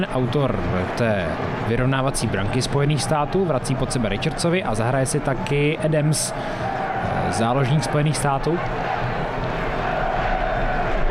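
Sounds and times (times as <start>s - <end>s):
speech: 0.0s - 8.9s
home fans chanting in stadium: 6.6s - 11.0s.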